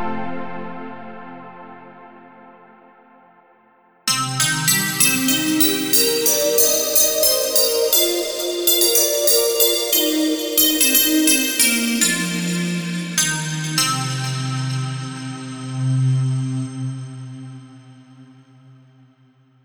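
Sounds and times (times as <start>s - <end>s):
bells ringing: 4.1s - 17.5s.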